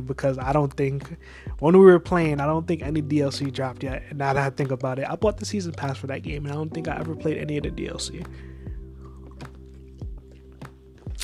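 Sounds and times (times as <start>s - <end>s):
speech: 0.0s - 8.5s
sipping tea: 8.3s - 11.2s.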